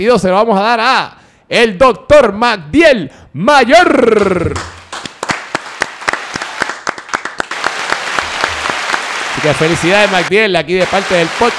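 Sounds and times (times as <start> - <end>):
speech: 0.0 - 4.7, 9.4 - 11.5
applause for an award presentation: 4.4 - 11.5.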